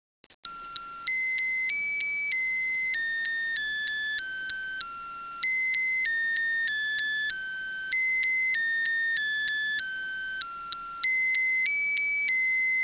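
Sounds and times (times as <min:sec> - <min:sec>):
simple melody: 0:00.5 - 0:12.8.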